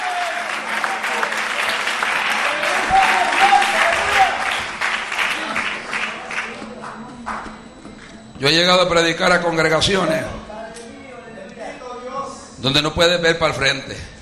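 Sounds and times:
audience applause: 0.0 - 7.5
speech: 8.4 - 10.4, 12.6 - 14.1.

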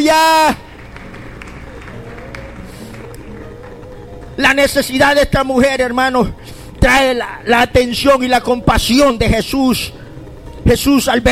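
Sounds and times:
speech: 0.0 - 0.6, 4.4 - 10.0, 10.7 - 11.2
audience applause: 0.5 - 4.4
murmur of voices: 0.8 - 4.4.

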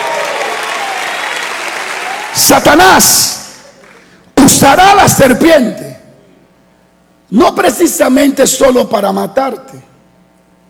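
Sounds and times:
church congregation applauding: 0.0 - 4.2
speech: 2.4 - 3.4, 4.5 - 5.9, 7.3 - 9.9.

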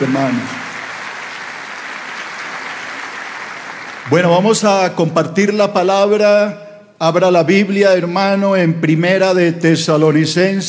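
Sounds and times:
speech: 0.0 - 0.6, 4.1 - 10.6
church congregation giving a welcoming round of applause: 0.0 - 5.0.

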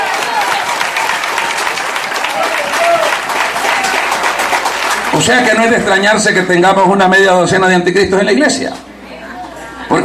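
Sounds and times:
audience applauding: 0.0 - 6.0
speech: 5.2 - 8.9.

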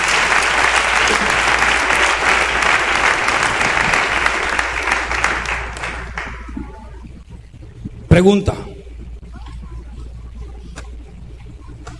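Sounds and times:
audience applauding loudly: 0.0 - 6.7
speech: 8.2 - 8.6.

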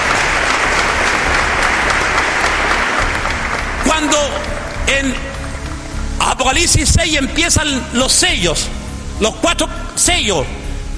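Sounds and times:
audience applauding: 0.0 - 6.7
speech: 5.0 - 5.3, 6.4 - 10.6.

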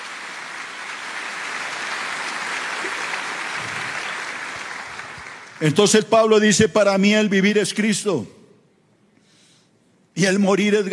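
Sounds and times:
audience applauding: 0.0 - 5.9
speech: 5.6 - 8.4, 10.2 - 10.9.

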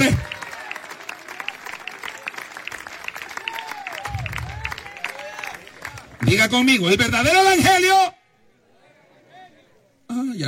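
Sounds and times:
audience applause: 0.0 - 6.6
speech: 6.2 - 8.2.

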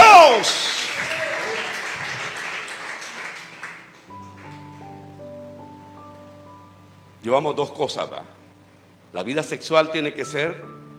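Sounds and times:
audience clapping hands: 0.0 - 5.0
speech: 7.2 - 8.4, 9.1 - 10.8.

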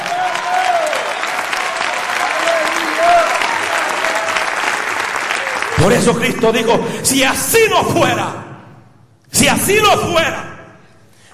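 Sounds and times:
audience applauding: 0.0 - 6.4
speech: 5.8 - 8.4, 9.4 - 10.4.

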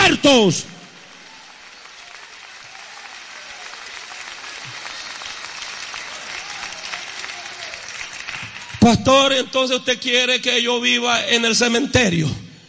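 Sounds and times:
audience applauding: 0.0 - 9.4
speech: 0.2 - 0.8, 8.8 - 12.4.

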